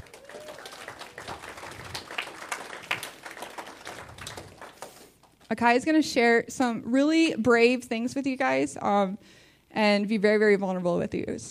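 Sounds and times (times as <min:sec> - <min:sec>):
audience applause: 0:00.0 - 0:05.3
speech: 0:05.5 - 0:11.4.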